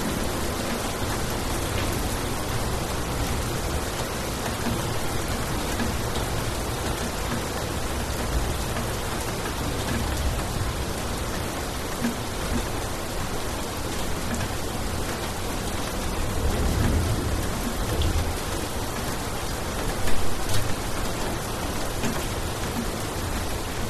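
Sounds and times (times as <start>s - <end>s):
heavy rain on concrete in Bali Indonesia: 0.0s - 23.8s
distant thunder in Bali Indonesia: 16.2s - 18.7s.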